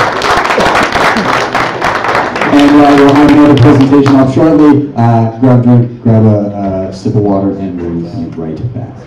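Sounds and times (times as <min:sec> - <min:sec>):
audience applause: 0:00.0 - 0:04.2
speech: 0:02.6 - 0:09.0.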